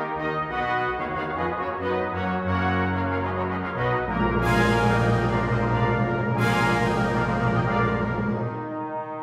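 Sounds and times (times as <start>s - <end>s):
triumphant fanfare: 0.1s - 9.2s.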